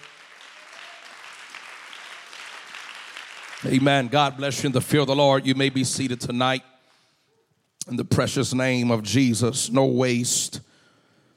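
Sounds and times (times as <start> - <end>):
audience clapping hands: 0.0 - 6.5
speech: 3.6 - 6.7, 7.9 - 10.7.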